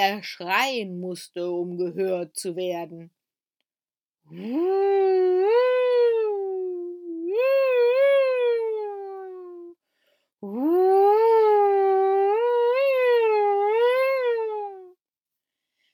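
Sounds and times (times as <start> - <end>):
speech: 0.0 - 3.2, 4.3 - 5.8, 10.4 - 11.0
voice imitating a strong howling wind: 4.3 - 9.7, 10.4 - 14.9.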